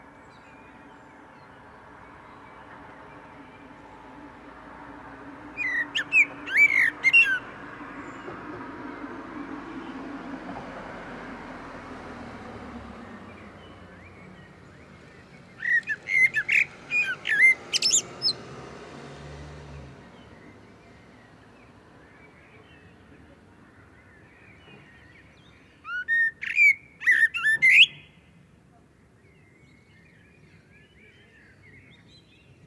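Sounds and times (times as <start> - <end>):
common blackbird whistling: 5.6 - 7.4, 15.6 - 18.4, 25.9 - 28.1.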